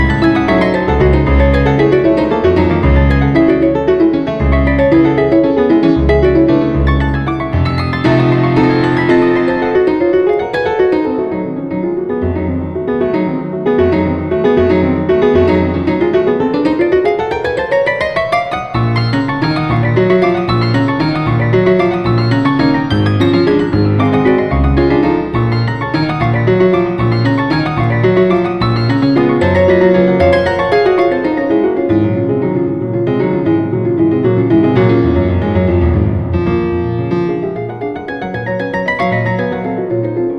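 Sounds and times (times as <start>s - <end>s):
Swiss grand piano from 1860: 0.0s - 40.3s.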